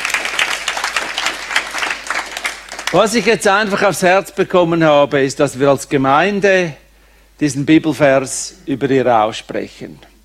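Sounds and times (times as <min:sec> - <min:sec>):
crowd audience clapping: 0:00.0 - 0:03.8
speech: 0:02.9 - 0:06.8, 0:07.4 - 0:10.1.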